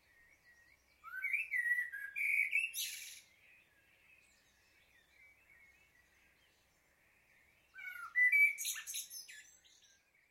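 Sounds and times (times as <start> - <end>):
blackbird: 0.0 - 10.3.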